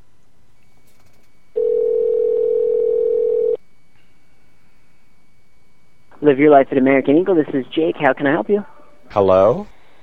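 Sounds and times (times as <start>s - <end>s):
telephone call dialing and ringing: 1.6s - 3.6s
speech: 6.2s - 9.8s.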